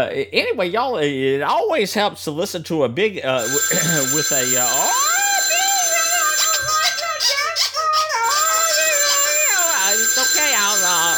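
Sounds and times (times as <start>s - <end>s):
speech: 0.0s - 5.1s
phone ringing with a melodic electronic ringtone: 3.4s - 11.1s.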